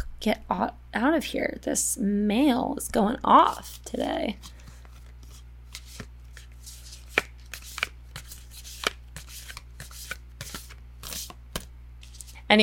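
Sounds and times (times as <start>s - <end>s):
low steady hum: 0.0s - 12.6s
speech: 0.2s - 4.6s
deck of playing cards being shuffled by hand: 3.4s - 12.4s.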